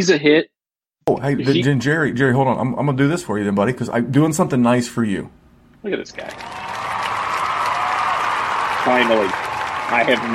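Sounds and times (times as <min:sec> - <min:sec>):
speech: 0:00.0 - 0:00.5, 0:01.1 - 0:06.6, 0:08.8 - 0:10.3
crowd applause: 0:06.2 - 0:10.3
faint cheering: 0:06.2 - 0:10.3.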